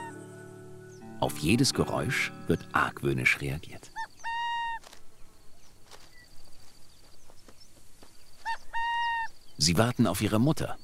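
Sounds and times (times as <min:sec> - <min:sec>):
burrowing owl calls: 0:00.0 - 0:00.2, 0:03.8 - 0:05.0, 0:08.4 - 0:09.4
speech: 0:01.2 - 0:03.9, 0:09.6 - 0:10.8.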